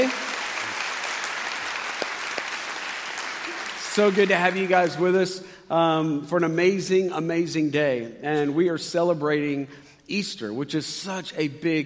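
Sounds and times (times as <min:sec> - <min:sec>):
church congregation clapping on Easter Sunday at a CityHope campus service: 0:00.0 - 0:05.2
speech: 0:04.0 - 0:11.8.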